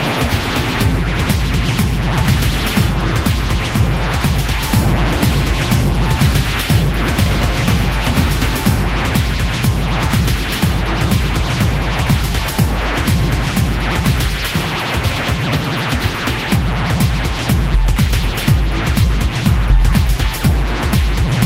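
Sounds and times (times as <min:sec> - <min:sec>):
rhythm and noise digital hardcore music: 0:00.0 - 0:21.4.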